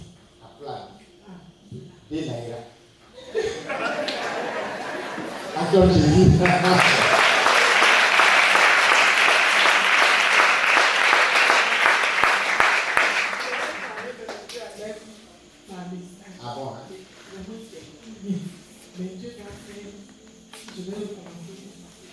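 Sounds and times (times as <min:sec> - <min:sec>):
speech: 0:00.6 - 0:02.7, 0:05.7 - 0:07.1
laughter: 0:03.2 - 0:11.8
audience applause and cheering at a religious retreat gathering: 0:06.4 - 0:14.1.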